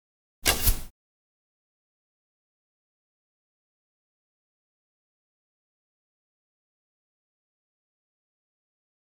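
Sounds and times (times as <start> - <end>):
bow shooting: 0.4 - 0.9.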